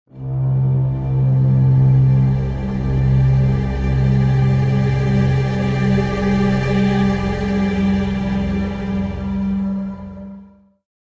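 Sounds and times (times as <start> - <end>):
modern foreboding music: 0.1 - 10.7.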